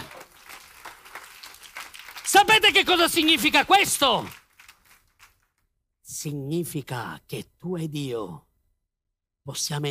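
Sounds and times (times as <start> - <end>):
audience applauding: 0.0 - 5.3
speech: 2.3 - 4.4, 6.2 - 8.5, 9.5 - 9.8.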